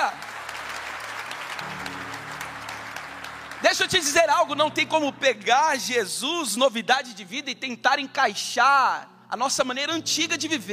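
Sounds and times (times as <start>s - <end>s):
audience applauding: 0.0s - 4.8s
speech: 3.6s - 10.7s.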